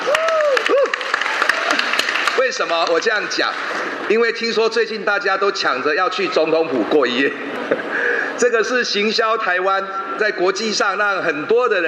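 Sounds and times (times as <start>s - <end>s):
applause welcoming the president: 0.0s - 4.0s
speech: 2.5s - 11.8s.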